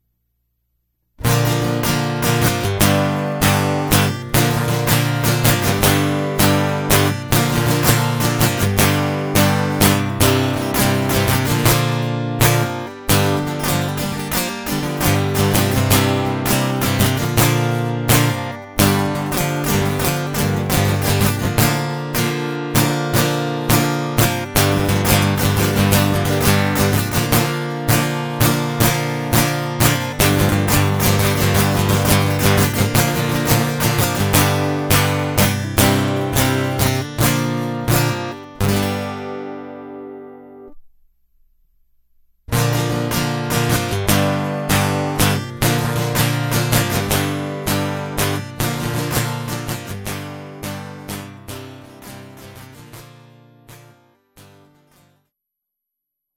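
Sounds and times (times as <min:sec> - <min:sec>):
guitar: 0:01.2 - 0:41.0, 0:42.5 - 0:55.3.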